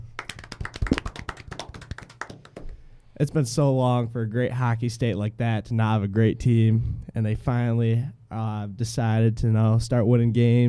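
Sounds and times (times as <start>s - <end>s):
applause: 0.0s - 2.7s
speech: 3.2s - 10.6s.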